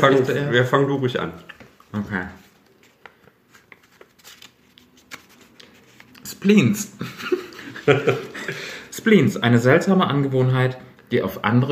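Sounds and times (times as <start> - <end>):
speech: 0.0 - 2.4, 6.4 - 11.6
rolled paper slip being unrolled: 1.8 - 6.3
laughter: 7.0 - 8.9.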